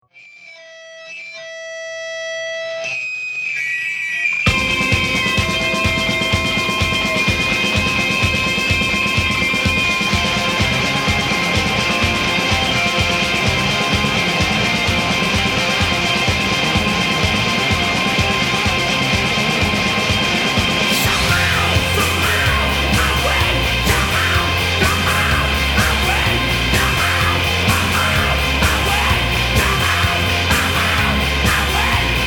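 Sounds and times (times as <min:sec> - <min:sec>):
rock music: 0:00.5 - 0:32.2.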